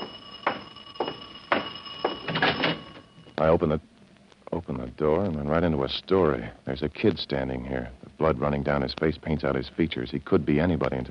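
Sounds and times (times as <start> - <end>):
stuck doorbell ringing: 0.0 - 3.4
speech: 3.4 - 3.9, 4.6 - 11.0.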